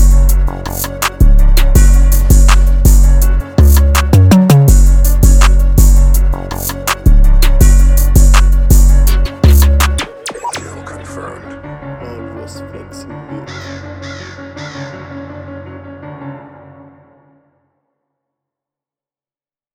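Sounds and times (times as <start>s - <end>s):
164 bpm drum beats: 0.0s - 10.7s.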